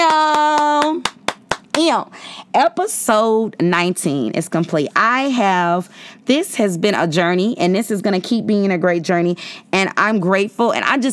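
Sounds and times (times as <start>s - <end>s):
hand claps: 0.0s - 2.0s
speech: 1.8s - 11.1s.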